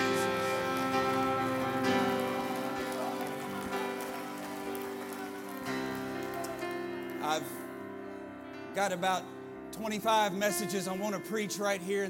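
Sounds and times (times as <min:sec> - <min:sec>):
audience clapping: 0:00.0 - 0:07.6
sustained musical tones: 0:00.0 - 0:07.7
speech: 0:07.3 - 0:07.6, 0:08.8 - 0:12.0.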